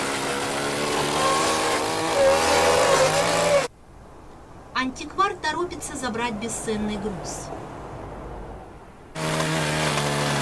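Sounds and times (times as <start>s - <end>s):
chainsaw cutting through a wooden dresser: 0.0s - 3.7s, 9.2s - 10.4s
speech: 4.8s - 7.8s.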